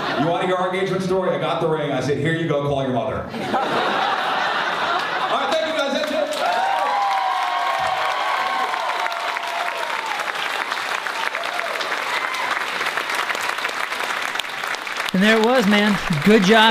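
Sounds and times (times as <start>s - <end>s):
laughter: 0.0s - 0.8s, 3.3s - 6.4s
speech: 0.2s - 4.2s, 15.2s - 16.6s
large audience applause: 3.9s - 16.6s
cheering and shouted whoops: 6.3s - 13.0s.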